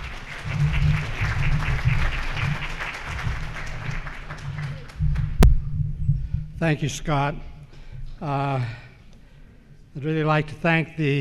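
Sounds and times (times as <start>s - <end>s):
audience applause welcoming a speaker on Book of Mormon geography: 0.0s - 5.4s
throbbing low rumble: 0.0s - 8.3s
speech: 6.6s - 7.5s, 8.2s - 8.8s, 10.0s - 11.1s.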